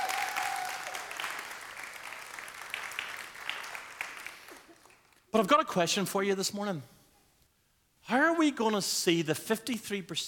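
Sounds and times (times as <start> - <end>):
round of applause: 0.0 - 5.2
speech: 5.3 - 7.0, 8.1 - 10.2.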